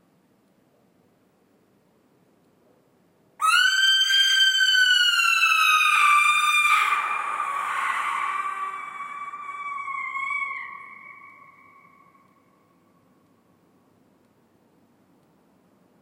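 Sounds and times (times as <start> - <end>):
barn owl screams: 3.4 - 12.7.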